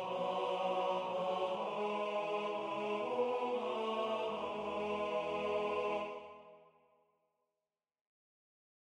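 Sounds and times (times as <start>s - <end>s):
tenor singing: 0.0s - 6.5s.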